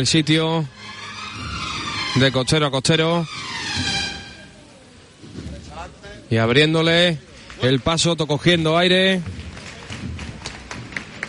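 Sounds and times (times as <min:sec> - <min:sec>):
speech: 0:00.0 - 0:01.5, 0:02.1 - 0:03.9, 0:05.8 - 0:09.4
street crowd applauding: 0:07.4 - 0:11.2.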